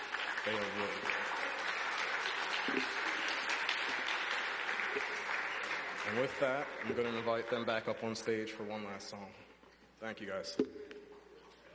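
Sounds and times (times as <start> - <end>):
audience applause: 0.0 - 8.4
speech: 0.4 - 1.6, 6.1 - 10.8.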